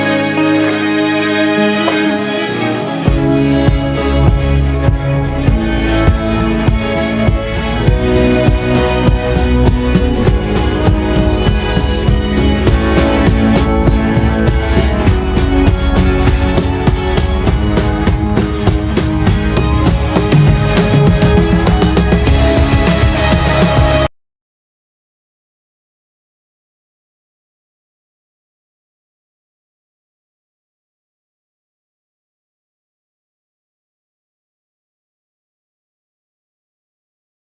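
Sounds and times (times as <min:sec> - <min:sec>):
karaoke backing track: 0:00.0 - 0:24.1.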